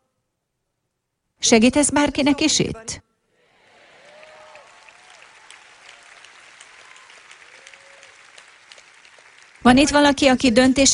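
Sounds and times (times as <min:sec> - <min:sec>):
speech: 0:01.4 - 0:03.1, 0:09.7 - 0:10.9
audience applause: 0:03.4 - 0:10.6.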